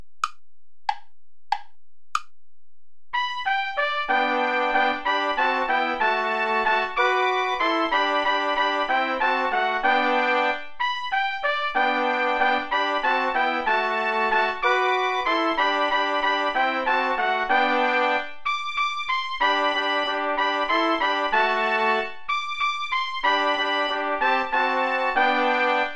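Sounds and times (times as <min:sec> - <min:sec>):
play-along backing music without trombone: 0:03.2 - 0:18.4, 0:19.1 - 0:25.9.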